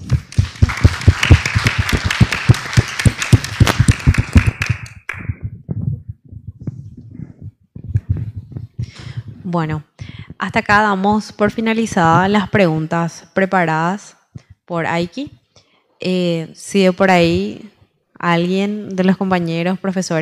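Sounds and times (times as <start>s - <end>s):
audience applause: 0.0s - 5.3s
speech: 9.5s - 15.4s, 16.0s - 20.2s.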